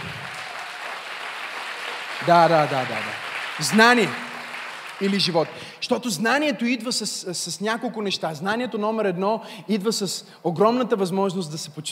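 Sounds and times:
audience applause: 0.0s - 5.7s
speech: 2.2s - 4.3s, 5.0s - 11.9s.

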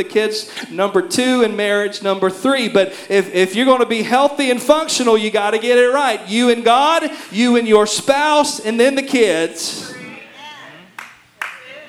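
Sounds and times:
speech: 0.0s - 10.0s
golf clap from audience member: 9.8s - 11.8s.

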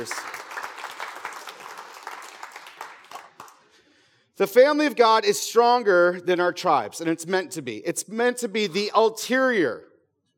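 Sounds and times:
speech: 0.0s - 0.4s, 4.4s - 9.9s
audience clapping for actors: 0.0s - 3.8s.

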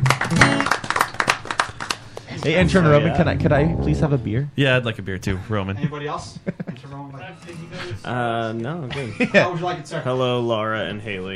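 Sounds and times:
round of applause: 0.0s - 2.6s
speech: 2.4s - 11.3s.

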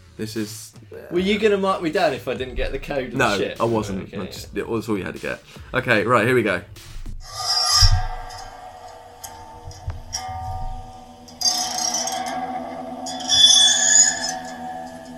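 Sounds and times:
speech: 0.2s - 7.4s
door key scraped along old piano strings: 7.2s - 15.1s.

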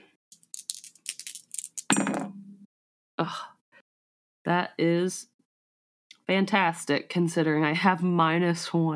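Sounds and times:
dice rolling on a table: 0.4s - 2.3s
speech: 3.2s - 3.5s, 4.5s - 5.3s, 6.3s - 8.9s.

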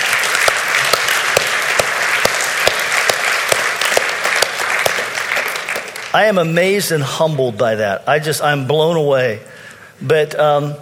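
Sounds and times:
crowd applauding: 0.0s - 6.5s
speech: 6.2s - 10.8s.

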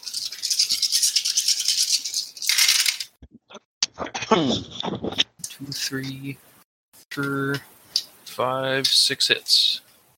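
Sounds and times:
dice being rolled: 0.6s - 3.2s
speech: 4.3s - 6.5s, 7.2s - 7.8s, 8.4s - 9.7s.

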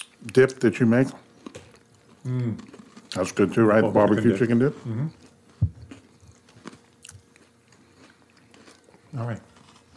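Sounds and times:
speech: 0.2s - 1.2s, 2.2s - 5.2s
person chewing crunchy snacks: 1.3s - 9.9s
mouth sounds: 2.2s - 5.3s.

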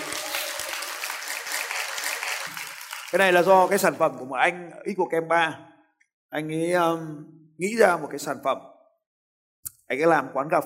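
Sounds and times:
audience applause: 0.0s - 3.9s
speech: 3.1s - 5.7s, 6.3s - 8.7s, 9.9s - 10.6s.

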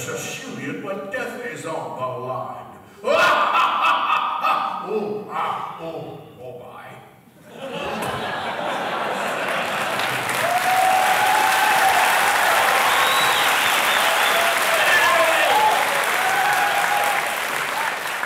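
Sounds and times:
speech: 0.1s - 3.8s, 4.8s - 6.9s
laughter: 3.0s - 5.0s, 7.4s - 10.5s
large crowd audience applause: 8.0s - 18.2s
faint cheers and whistles: 10.4s - 18.1s.

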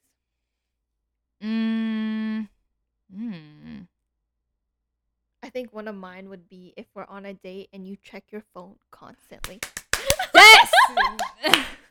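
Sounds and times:
speech: 5.6s - 9.8s, 11.0s - 11.8s
hand claps in excitement: 9.4s - 11.8s
excited high-pitched vocal squeal: 10.0s - 11.7s
giggly laughter: 10.0s - 11.8s.

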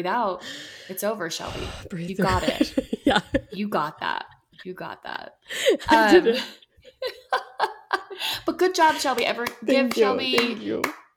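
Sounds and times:
speech: 0.0s - 11.0s
hand clapping: 9.0s - 11.1s.

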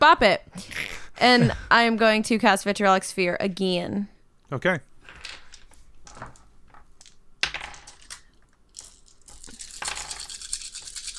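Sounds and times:
speech: 0.0s - 4.9s
dice rolling: 5.0s - 11.1s.

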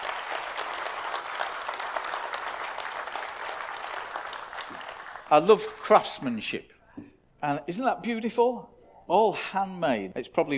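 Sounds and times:
audience applause: 0.0s - 6.1s
speech: 5.3s - 6.7s, 7.4s - 10.5s.

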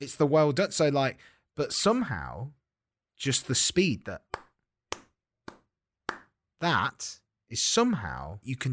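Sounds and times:
speech: 0.0s - 2.6s, 3.2s - 4.4s, 6.6s - 8.7s
hand clapping: 4.2s - 6.4s.

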